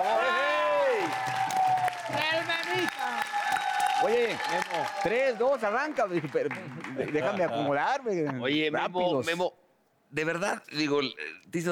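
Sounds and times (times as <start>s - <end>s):
voices cheering: 0.0s - 5.9s
audience clapping: 0.0s - 7.8s
speech: 4.0s - 11.7s
laughter: 6.2s - 8.5s.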